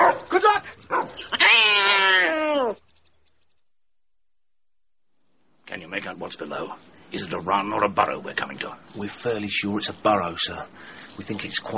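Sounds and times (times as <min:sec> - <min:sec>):
farmyard cat yowling: 0:00.9 - 0:02.8
speech: 0:06.0 - 0:11.7.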